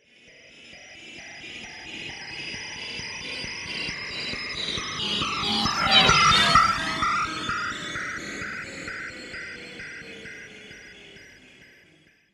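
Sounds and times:
anime satellite flying object sound effect: 0:04.8 - 0:07.9.

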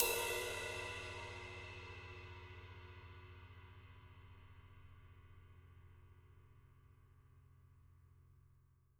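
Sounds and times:
live drums: 0:00.0 - 0:01.8.

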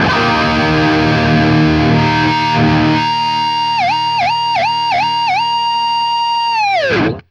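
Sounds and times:
D-sharp guitar power chord: 0:00.0 - 0:07.2.

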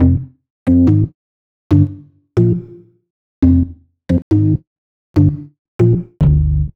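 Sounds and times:
organ bass: 0:00.0 - 0:01.1, 0:01.7 - 0:02.7, 0:03.4 - 0:04.6, 0:05.2 - 0:06.7.

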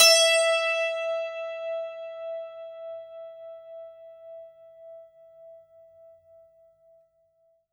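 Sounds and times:
santoor playing E4: 0:00.0 - 0:04.4.

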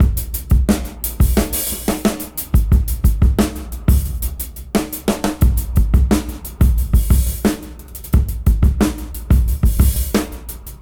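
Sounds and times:
fat reversed drum break: 0:00.0 - 0:10.7.

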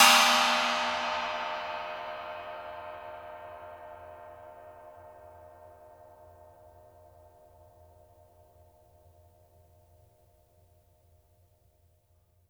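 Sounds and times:
pang cymbals struck with a stick: 0:00.0 - 0:04.0.

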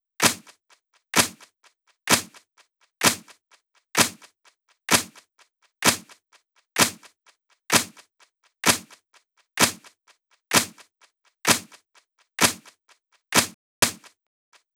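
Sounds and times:
clap loop: 0:00.2 - 0:00.6, 0:01.2 - 0:01.5, 0:02.1 - 0:03.4, 0:04.0 - 0:04.3, 0:04.9 - 0:06.2, 0:06.8 - 0:09.0, 0:09.6 - 0:11.8, 0:12.4 - 0:14.2.

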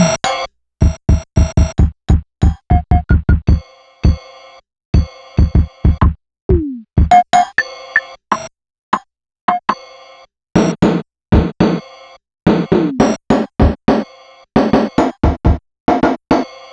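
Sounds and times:
Realistic Concertmate-670 layered rhythm kit: 0:00.0 - 0:04.2, 0:05.0 - 0:07.6, 0:10.6 - 0:11.8, 0:12.5 - 0:14.0, 0:14.6 - 0:16.4.

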